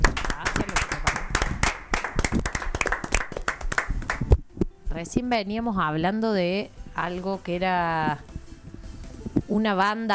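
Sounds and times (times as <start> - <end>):
studio audience clapping: 0.0 - 4.4
speech: 5.0 - 8.3, 9.5 - 10.1.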